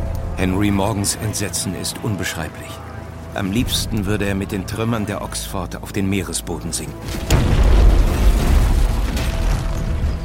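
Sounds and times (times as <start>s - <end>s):
speech: 0.4s - 7.7s
explosions of anchored ships with filled powder chambers: 7.1s - 10.2s.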